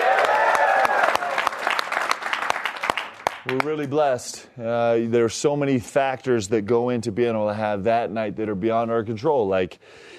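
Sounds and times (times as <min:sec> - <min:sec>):
crowd cheering and whooping: 0:00.0 - 0:01.8
crowd clapping: 0:00.0 - 0:04.0
speech: 0:03.4 - 0:10.1.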